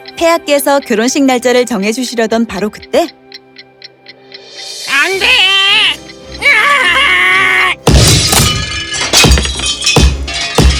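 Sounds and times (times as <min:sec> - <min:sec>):
speech: 0:00.2 - 0:03.2, 0:05.0 - 0:06.9
clock shattering: 0:07.8 - 0:10.7.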